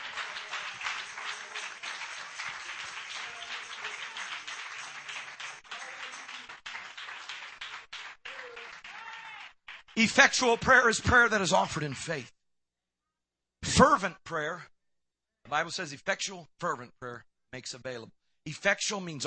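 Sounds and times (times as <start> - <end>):
audience clapping: 0.0 - 12.2
speech: 10.0 - 12.4, 13.8 - 14.7, 15.5 - 19.2.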